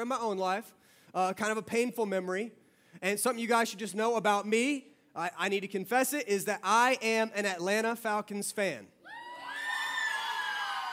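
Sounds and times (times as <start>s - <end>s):
speech: 0.0s - 9.0s
audience cheering: 9.1s - 10.9s.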